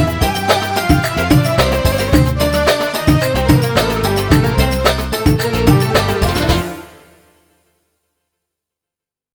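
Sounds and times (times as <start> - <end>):
jerk music: 0.0 - 7.2.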